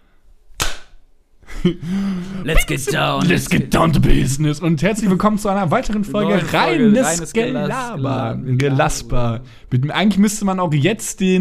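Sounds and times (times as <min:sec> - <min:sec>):
hand clap for audio sync: 0:00.6 - 0:01.0
laughter: 0:01.6 - 0:04.3, 0:05.7 - 0:08.6
speech: 0:01.6 - 0:11.3.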